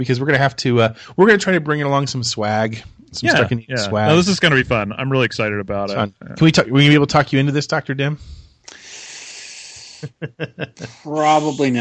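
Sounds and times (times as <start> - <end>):
speech: 0.0 - 8.8, 10.0 - 11.7
laughter: 3.2 - 4.9, 10.0 - 11.7
slow hissing breath intake through teeth: 8.2 - 10.2.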